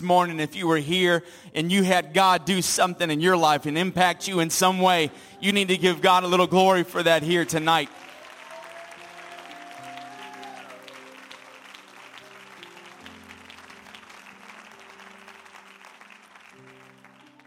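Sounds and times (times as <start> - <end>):
speech: 0.0 - 8.0
audience hand clapping: 7.0 - 17.4.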